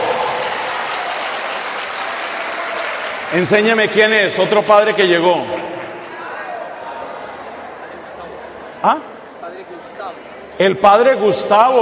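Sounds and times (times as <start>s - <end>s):
audience applause: 0.0s - 4.6s
speech: 3.3s - 5.8s, 8.8s - 9.1s, 10.1s - 11.7s.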